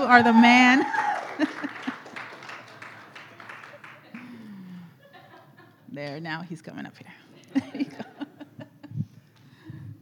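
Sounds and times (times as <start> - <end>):
crowd applauding: 0.0 - 4.9
speech: 0.1 - 1.5, 6.0 - 8.1
laughter: 1.1 - 5.8, 7.4 - 8.9.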